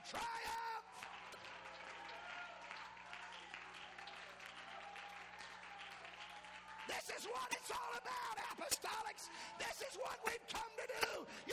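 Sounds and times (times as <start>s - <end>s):
audience clapping hands: 0.0s - 9.2s
speech: 0.1s - 0.6s, 7.2s - 11.5s.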